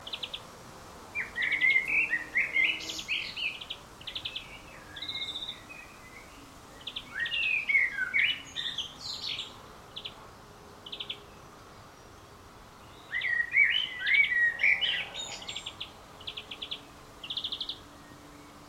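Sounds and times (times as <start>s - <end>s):
common blackbird singing: 1.2s - 10.2s, 10.8s - 11.4s, 12.8s - 18.6s.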